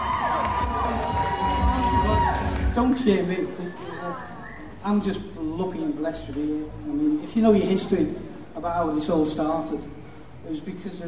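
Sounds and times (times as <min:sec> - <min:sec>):
crowd of about 1500 people cheering at a party: 0:00.0 - 0:03.3
speech: 0:02.8 - 0:03.8, 0:04.8 - 0:11.0.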